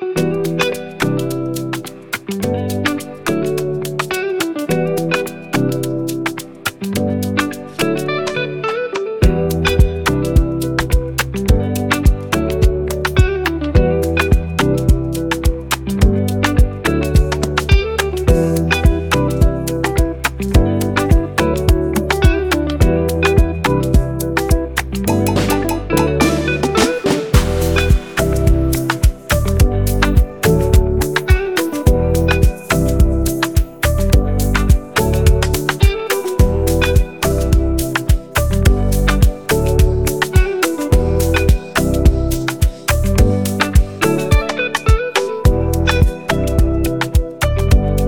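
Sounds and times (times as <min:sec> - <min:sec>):
afropop beat: 0:00.2 - 0:48.0.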